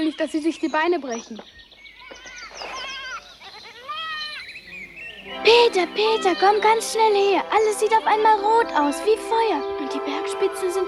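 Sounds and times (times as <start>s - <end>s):
speech: 0.0s - 1.7s, 5.3s - 10.8s
goats bleating: 2.0s - 4.5s, 5.6s - 7.0s.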